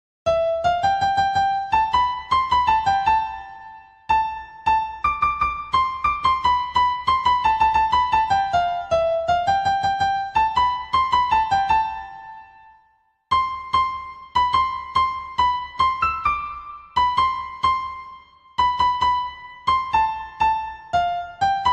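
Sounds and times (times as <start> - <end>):
piano song: 0.3 - 21.7.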